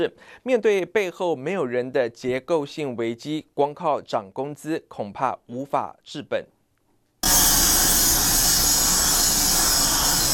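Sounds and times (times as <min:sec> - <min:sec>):
speech: 0:00.0 - 0:06.6
power tools grinding on production line: 0:07.2 - 0:10.3.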